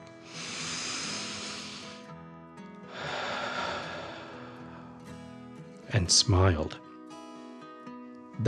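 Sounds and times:
deep breath in and out: 0.1s - 2.2s, 2.8s - 5.2s
speech: 5.9s - 6.9s.

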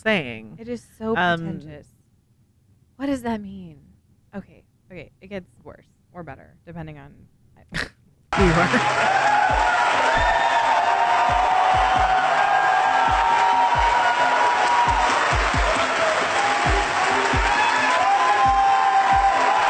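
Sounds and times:
speech: 0.0s - 2.0s, 3.0s - 10.4s
audience applause: 8.4s - 19.6s.

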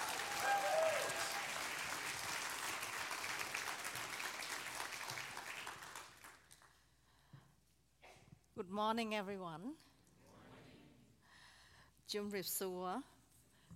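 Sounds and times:
audience clapping welcoming a speaker at a summit morning session: 0.0s - 6.8s
speech: 8.6s - 9.9s, 12.1s - 13.2s.

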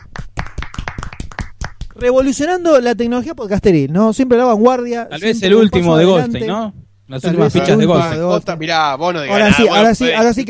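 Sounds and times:
small group clapping: 0.0s - 2.4s
speech: 2.0s - 10.4s.

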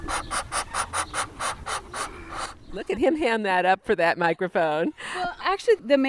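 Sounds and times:
male Muscovy duck hissing: 0.0s - 2.6s
speech: 2.9s - 6.0s.

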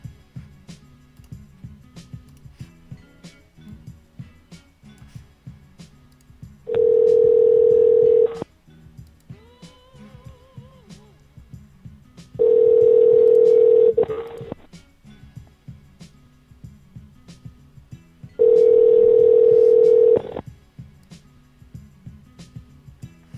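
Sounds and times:
telephone line tones while placing a call to a Sprint number: 6.7s - 8.4s, 12.4s - 14.6s, 18.4s - 20.4s.

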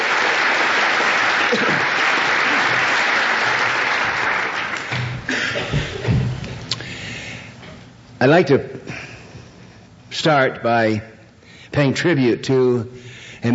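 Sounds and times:
audience applause: 0.0s - 6.2s
speech: 8.2s - 9.0s, 10.2s - 11.1s, 11.7s - 13.5s.

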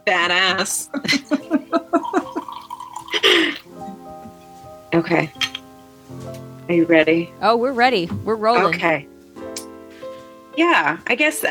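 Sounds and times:
speech: 0.1s - 1.4s, 5.0s - 5.5s, 6.7s - 9.1s, 10.6s - 11.5s
wine glugging from a bottle: 1.5s - 3.7s.

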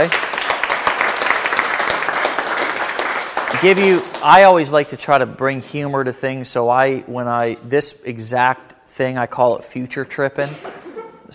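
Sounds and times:
speech: 0.0s - 0.2s, 3.6s - 11.3s
audience applause: 0.0s - 4.5s.

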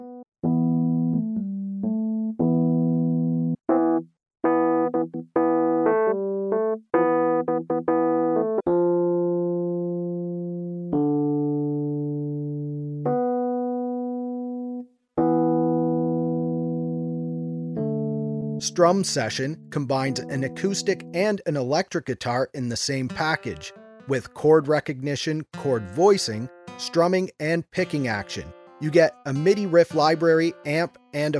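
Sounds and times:
classic electric piano plugin tones: 0.0s - 21.3s
speech: 18.8s - 31.3s.

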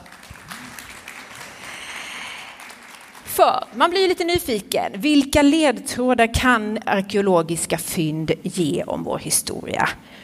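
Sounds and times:
audience applause: 0.0s - 3.7s
speech: 3.4s - 10.2s.

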